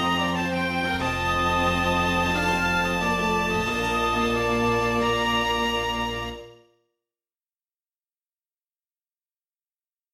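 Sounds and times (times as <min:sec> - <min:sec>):
baroque harpsichord orchestration: 0:00.0 - 0:06.4.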